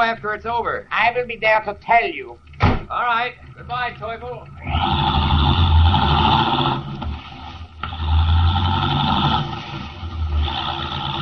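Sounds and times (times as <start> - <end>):
speech: 0.0 - 5.6
car engine roaring driving rapidly away: 2.4 - 11.1.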